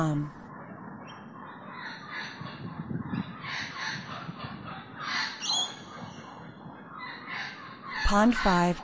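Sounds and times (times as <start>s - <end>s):
birds cawing: 1.1s - 8.7s.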